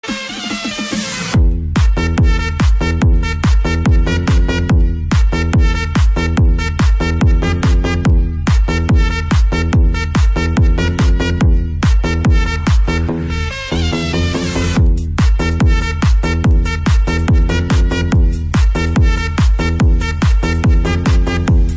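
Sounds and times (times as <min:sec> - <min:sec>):
squirrel and mouse transformation music: 0:00.0 - 0:21.7.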